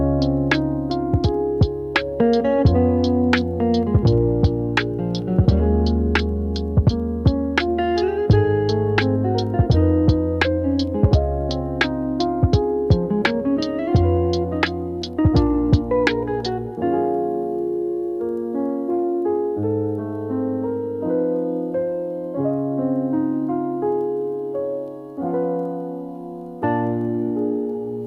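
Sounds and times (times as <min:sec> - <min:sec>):
chill lofi music: 0:00.0 - 0:28.0.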